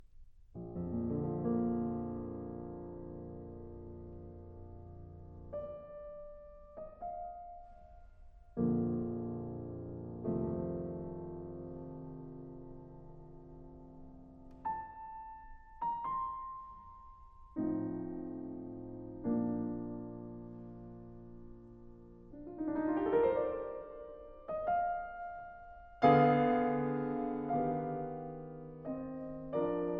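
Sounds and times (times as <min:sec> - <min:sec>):
piano sonata in D minor adagio: 0:00.0 - 0:29.9.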